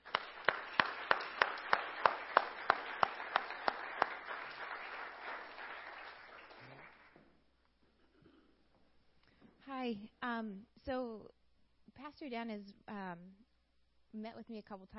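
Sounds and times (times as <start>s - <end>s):
audience clapping to welcome a speaker: 0.0s - 7.2s
speech: 9.8s - 11.4s, 12.0s - 13.4s, 14.1s - 14.9s.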